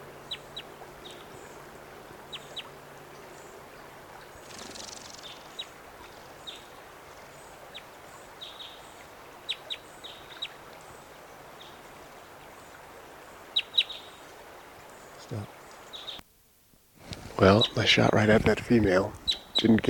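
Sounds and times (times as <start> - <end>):
bird calling: 0.0 - 11.0, 13.5 - 16.2, 17.1 - 18.2, 19.1 - 19.8
speech: 17.4 - 19.8.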